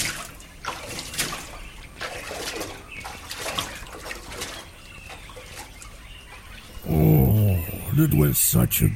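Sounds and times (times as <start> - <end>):
water splashing during a bath: 0.0 - 6.9
speech: 8.0 - 8.9.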